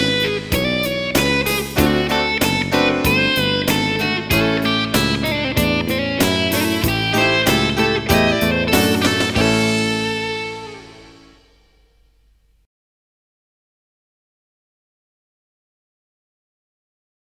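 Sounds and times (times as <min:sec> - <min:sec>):
blues guitar in A: 0:00.0 - 0:11.9.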